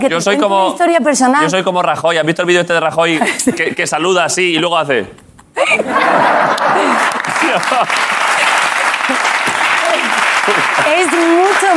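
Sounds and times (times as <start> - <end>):
speech: 0.0 - 8.2
laughter: 4.6 - 11.7
hand clapping: 6.5 - 11.7.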